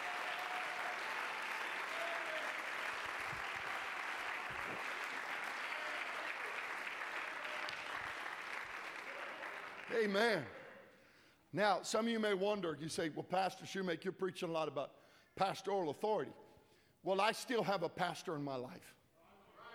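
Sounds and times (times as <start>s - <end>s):
audience clapping: 0.0s - 10.5s
speech: 9.9s - 10.6s, 11.5s - 16.4s, 17.0s - 19.0s.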